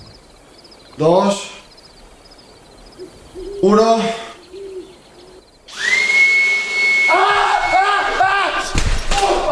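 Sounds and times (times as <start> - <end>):
speech: 1.0 - 1.5, 3.6 - 4.2
vacuum cleaner running: 5.7 - 7.7
sharp thump: 8.6 - 9.4.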